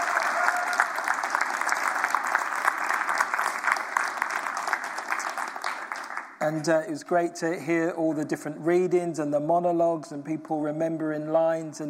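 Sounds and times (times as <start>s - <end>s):
audience applauding the choir: 0.0s - 6.4s
speech: 6.4s - 11.8s.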